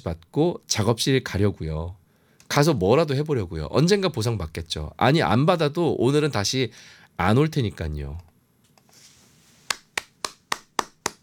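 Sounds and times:
speech: 0.0 - 8.3
applause, hands clapping: 9.7 - 11.2.

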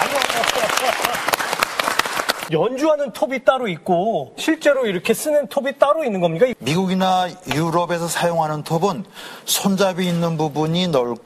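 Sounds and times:
audience applause for a musical saw player: 0.0 - 2.5
speech: 2.5 - 11.2.

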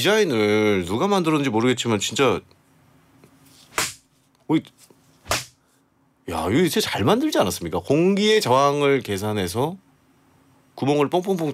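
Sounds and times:
speech: 0.0 - 2.6, 4.5 - 5.4, 6.3 - 9.8, 10.8 - 11.5
plastic fly swatter swishing through air: 5.2 - 5.6.

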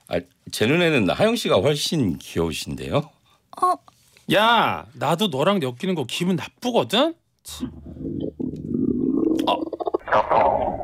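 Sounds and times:
speech: 0.1 - 8.2, 9.4 - 10.8
stomach rumbling after overeating: 7.6 - 10.8.

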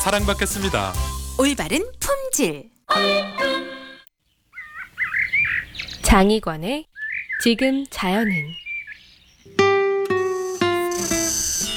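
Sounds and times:
speech: 0.0 - 3.5, 6.1 - 8.6
Meimuna mongolica cicada singing: 4.5 - 6.0, 6.9 - 11.7
rising hiss: 10.2 - 11.7.

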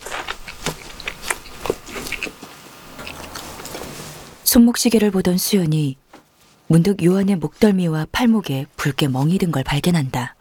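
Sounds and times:
eating bread, chewing with stuffed mouth: 0.0 - 3.8
speech: 4.5 - 6.0, 6.7 - 10.3.

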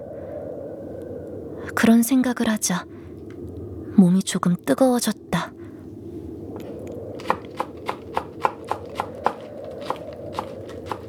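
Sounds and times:
speech: 1.6 - 3.0, 4.0 - 5.6
knife chopping green onion and radish on a cutting board: 7.2 - 11.0.

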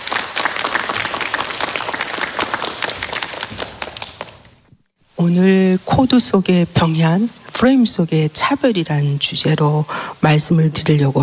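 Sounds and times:
audience applause welcoming a speaker: 0.0 - 4.6
speech: 5.2 - 11.2.

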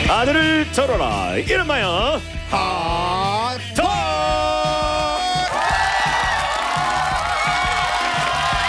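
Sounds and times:
speech: 0.1 - 3.9
studio audience cheering and applauding: 5.0 - 8.6.

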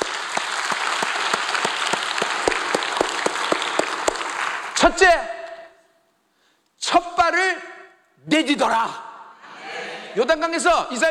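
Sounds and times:
audience applause: 0.0 - 4.9
speech: 4.8 - 5.3, 8.3 - 9.1, 10.1 - 11.0.

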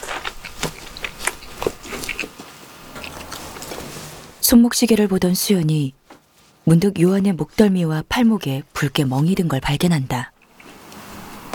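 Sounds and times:
person chewing bread: 0.0 - 4.3, 10.4 - 11.5
low steady hum: 0.0 - 11.5
speech: 4.5 - 6.0, 6.7 - 10.3.

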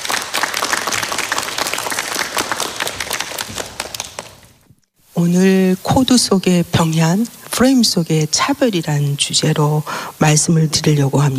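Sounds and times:
audience applause welcoming a speaker: 0.0 - 4.6
speech: 5.2 - 11.3.

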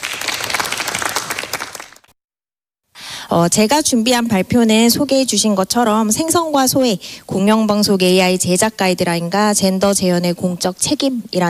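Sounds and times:
audience applause welcoming a speaker: 0.0 - 2.1
speech: 3.3 - 11.4.

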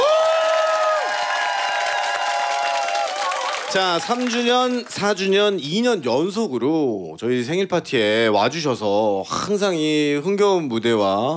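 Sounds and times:
audience high-pitched screams and whoops: 0.0 - 4.8
audience clapping: 0.0 - 5.4
speech: 3.7 - 11.3.

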